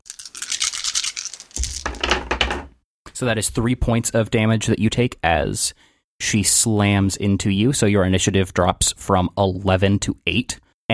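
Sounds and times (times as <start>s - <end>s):
handful of dice rattling and rolling: 0.0s - 2.4s
speech: 3.2s - 10.9s.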